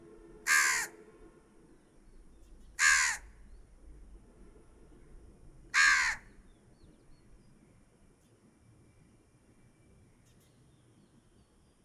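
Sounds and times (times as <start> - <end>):
crow cawing: 0.5 - 0.9, 2.8 - 3.3, 5.7 - 6.3.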